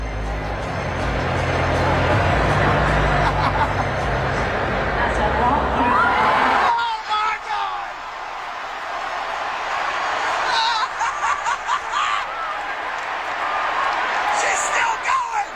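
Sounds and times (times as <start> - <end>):
music of a performance: 0.0 - 6.6
roaring crowd cheering over a performance: 0.0 - 15.5
laughter: 1.9 - 4.4, 10.3 - 12.5.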